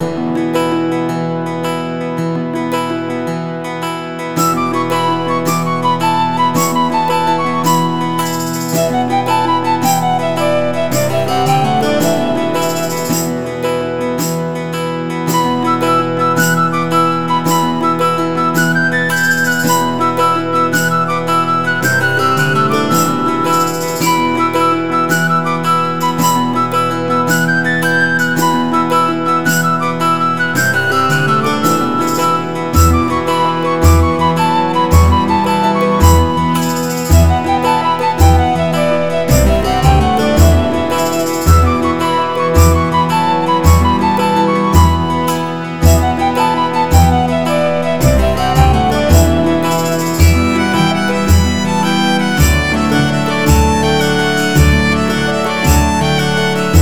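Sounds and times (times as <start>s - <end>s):
medieval music loop: 0.0s - 56.8s.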